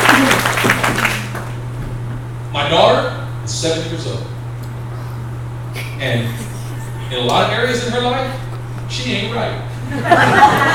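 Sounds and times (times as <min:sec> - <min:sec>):
audience hand clapping: 0:00.0 - 0:01.6
speech: 0:03.6 - 0:04.4, 0:06.0 - 0:06.5, 0:07.1 - 0:10.7
laughter: 0:05.7 - 0:10.7.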